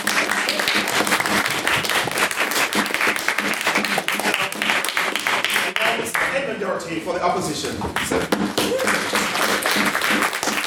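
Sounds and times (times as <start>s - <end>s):
audience applause: 0.0s - 6.2s, 8.6s - 10.6s
speech: 6.8s - 9.1s.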